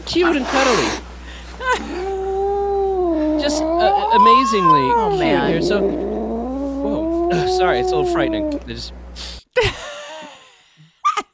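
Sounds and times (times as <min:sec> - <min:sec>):
speech: 0:00.0 - 0:02.1, 0:03.4 - 0:06.1, 0:06.8 - 0:09.8
cat noises: 0:01.8 - 0:08.8.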